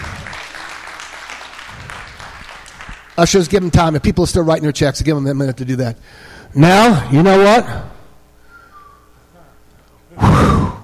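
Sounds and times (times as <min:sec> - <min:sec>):
church congregation clapping: 0:00.0 - 0:04.3
speech: 0:03.2 - 0:07.9.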